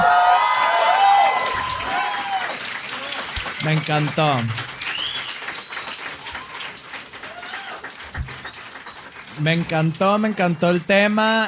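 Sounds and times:
live crowd cheering and applauding: 0:00.0 - 0:11.2
speech: 0:03.6 - 0:04.6, 0:09.4 - 0:11.4
shrill sliding whistles from live audience: 0:04.9 - 0:07.0, 0:08.3 - 0:09.7.

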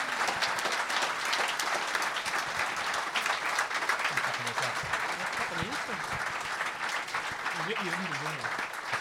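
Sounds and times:
audience applause for panelists: 0:00.0 - 0:08.9.

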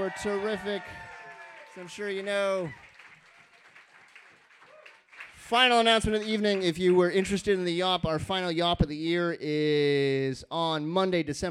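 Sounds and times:
audience applause for poets: 0:00.0 - 0:07.5
speech: 0:00.1 - 0:01.1, 0:01.8 - 0:02.8, 0:05.5 - 0:11.5.

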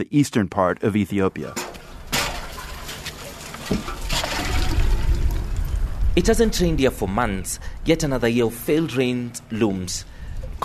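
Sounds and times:
speech: 0:00.0 - 0:01.8, 0:03.7 - 0:04.0, 0:06.2 - 0:10.6
water drawn from a big tank into big plastic and metal buckets: 0:01.6 - 0:06.0.

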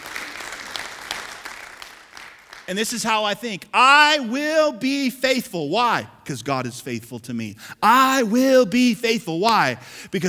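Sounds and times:
crowd clapping: 0:00.0 - 0:03.0
speech: 0:02.7 - 0:10.2.

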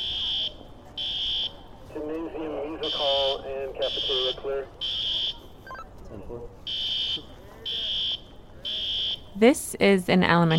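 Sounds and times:
school fire alarm during evacuation drill: 0:00.0 - 0:01.7, 0:02.8 - 0:05.8, 0:06.7 - 0:09.4
low murmur of noise: 0:00.0 - 0:10.5
speech: 0:02.3 - 0:04.9, 0:06.1 - 0:06.6, 0:09.4 - 0:10.5.

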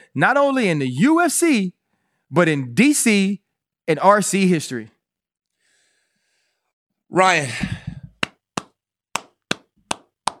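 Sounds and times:
speech: 0:00.1 - 0:05.0, 0:07.1 - 0:07.8
hand claps: 0:07.9 - 0:10.3.

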